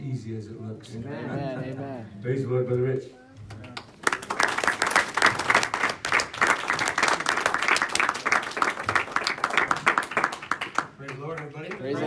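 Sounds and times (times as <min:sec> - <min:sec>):
speech: 0:00.2 - 0:03.6
audience applause: 0:03.7 - 0:12.0.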